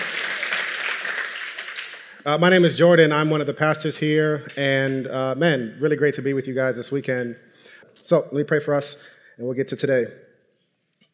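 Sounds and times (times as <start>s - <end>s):
audience applause: 0.0s - 2.2s
speech: 2.2s - 10.2s.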